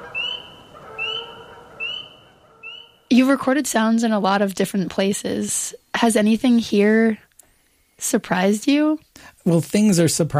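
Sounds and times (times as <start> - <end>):
distant spring peeper frog calling: 0.0 - 3.2
speech: 3.1 - 7.2, 8.0 - 10.3.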